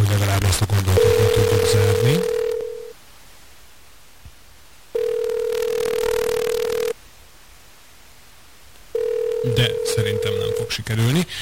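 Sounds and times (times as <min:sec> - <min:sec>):
telephone tone while calling back after a dropped line: 0:01.0 - 0:03.0, 0:05.0 - 0:07.0, 0:08.9 - 0:10.8
speech: 0:10.8 - 0:11.4.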